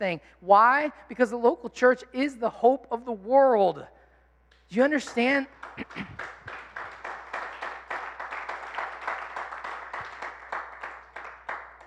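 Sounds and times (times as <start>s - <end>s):
speech: 0.0s - 4.0s, 4.7s - 6.4s
audience clapping: 5.5s - 11.8s.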